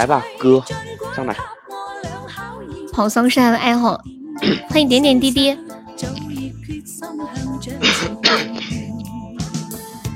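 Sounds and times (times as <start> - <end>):
speech: 0.0 - 1.6, 3.0 - 6.1
person coughing: 4.4 - 4.8, 7.8 - 8.8.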